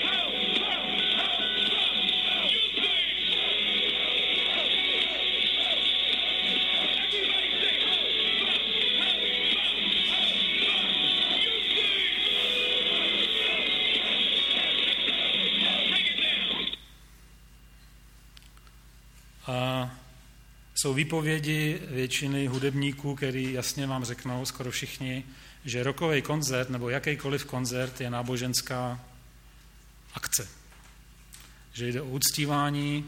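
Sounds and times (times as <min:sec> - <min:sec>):
concert crowd chanting: 0:00.0 - 0:16.8
speech: 0:20.9 - 0:29.1, 0:30.4 - 0:30.6, 0:31.8 - 0:33.0.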